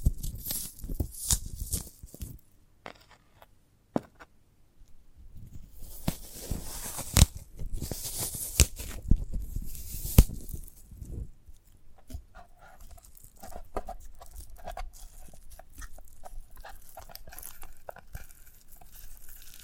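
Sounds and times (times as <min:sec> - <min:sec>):
sprouted coconut crunching, tearing and crinkling: 0:00.0 - 0:02.4, 0:05.8 - 0:10.9, 0:11.6 - 0:19.6.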